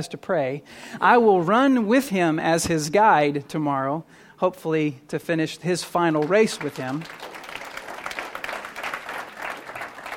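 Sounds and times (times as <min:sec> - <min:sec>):
speech: 0:00.0 - 0:07.3
audience clapping: 0:05.8 - 0:10.1.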